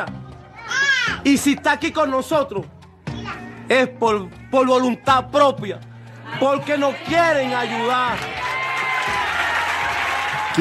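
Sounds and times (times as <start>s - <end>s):
speech: 0.0s - 2.8s, 3.7s - 8.4s
crowd applauding: 6.2s - 10.5s.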